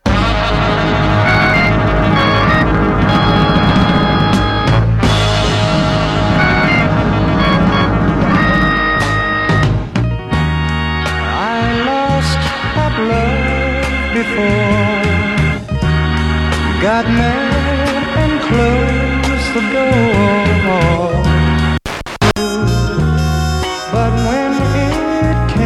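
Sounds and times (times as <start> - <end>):
song playing over an FM radio: 0.0 - 10.0, 11.0 - 15.6, 16.3 - 25.5
radio dial tuning noise: 0.8 - 4.8, 5.4 - 9.8, 21.8 - 22.6.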